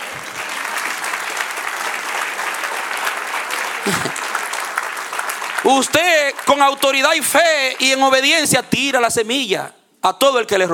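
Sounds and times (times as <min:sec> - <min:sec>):
audience applauding: 0:00.0 - 0:08.6
speech: 0:05.6 - 0:10.7.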